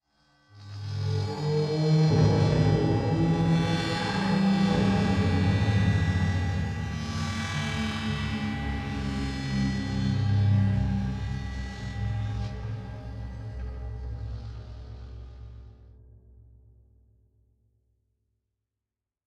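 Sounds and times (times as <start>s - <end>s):
intense musical stinger: 0.9s - 15.8s.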